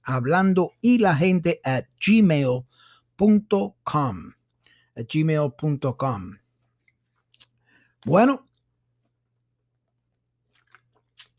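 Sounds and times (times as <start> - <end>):
speech: 0.1 - 4.4, 5.0 - 6.4, 8.0 - 8.5
person sipping water: 10.4 - 11.3.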